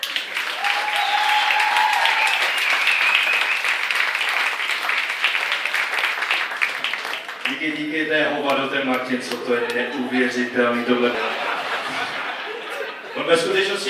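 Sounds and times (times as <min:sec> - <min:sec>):
audience applause: 0:00.0 - 0:13.1
whistles and cheers: 0:00.5 - 0:04.2
speech: 0:07.7 - 0:11.4, 0:13.3 - 0:13.8
laughter: 0:09.2 - 0:13.8.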